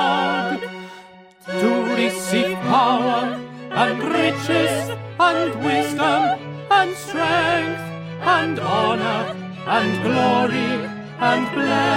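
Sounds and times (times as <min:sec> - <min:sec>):
tenor singing along: 0:00.0 - 0:11.9.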